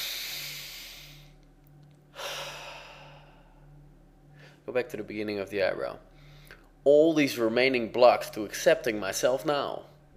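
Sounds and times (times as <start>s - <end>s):
person taking a slow, airy breath during a relaxation exercise: 0.0s - 1.4s, 2.1s - 4.6s
low hum: 0.0s - 10.1s
speech: 4.7s - 6.1s, 6.8s - 9.9s.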